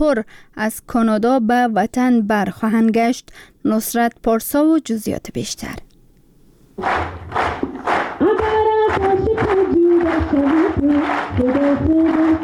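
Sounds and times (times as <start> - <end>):
speech: 0.0 - 5.9, 6.8 - 7.2, 10.4 - 12.4
rhythmic clapping in unison: 6.8 - 12.4.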